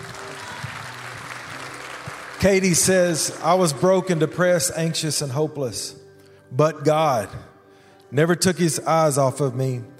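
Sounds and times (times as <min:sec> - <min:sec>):
audience applause: 0:00.0 - 0:03.5
speech: 0:02.4 - 0:07.5, 0:08.1 - 0:09.9.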